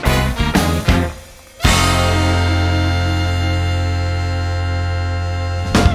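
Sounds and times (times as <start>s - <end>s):
jingle: 0.1s - 5.8s.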